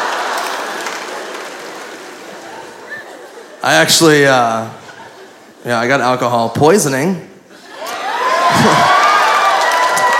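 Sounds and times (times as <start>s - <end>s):
audience applauding and cheering: 0.0s - 2.9s, 7.8s - 10.1s
speech: 3.6s - 4.8s, 5.6s - 7.3s.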